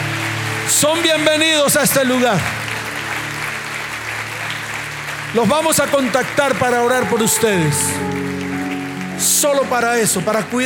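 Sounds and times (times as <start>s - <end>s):
large crowd applause: 0.0s - 10.6s
speech: 0.7s - 2.6s, 5.3s - 8.4s, 9.4s - 10.6s.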